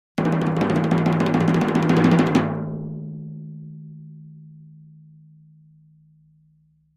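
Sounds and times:
tom drum roll: 0.2 - 2.9.

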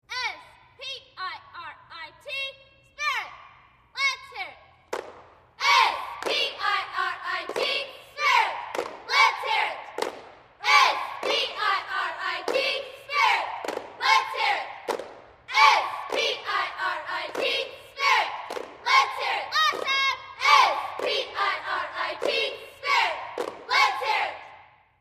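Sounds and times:
high school cheerleaders chanting a spirit cheer outdoors: 0.0 - 25.0.

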